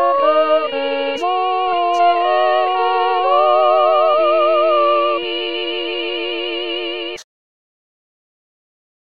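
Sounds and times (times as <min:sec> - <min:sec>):
women singing a sacred choral piece: 0:00.0 - 0:07.2.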